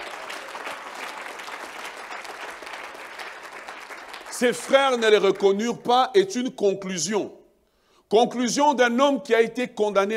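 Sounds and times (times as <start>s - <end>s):
audience applause: 0.0s - 5.5s
speech: 4.4s - 7.4s, 8.1s - 10.1s.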